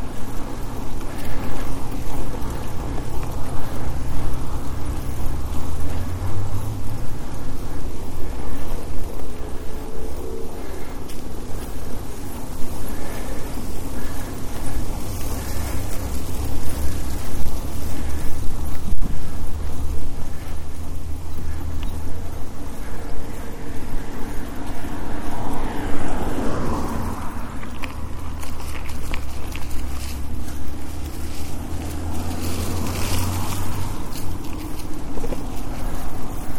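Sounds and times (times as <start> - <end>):
heavy truck rumbling along the road: 0.0 - 36.5.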